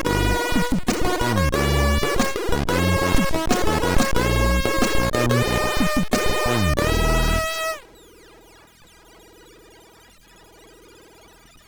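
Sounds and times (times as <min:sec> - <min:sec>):
chiptune music on MOS6581R2 SID chip: 0:00.0 - 0:07.8.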